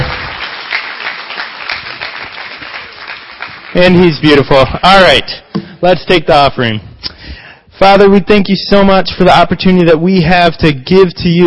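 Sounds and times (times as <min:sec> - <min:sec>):
crowd applause: 0:00.0 - 0:04.6
speech: 0:03.8 - 0:06.9, 0:07.8 - 0:11.4.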